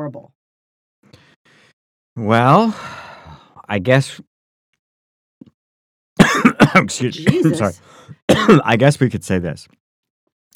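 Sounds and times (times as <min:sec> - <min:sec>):
speech: 0:00.1 - 0:00.4, 0:02.2 - 0:03.0, 0:03.7 - 0:04.3, 0:06.7 - 0:09.8
person coughing after a drink went down the wrong way: 0:06.2 - 0:08.7
throat clearing: 0:06.2 - 0:08.7.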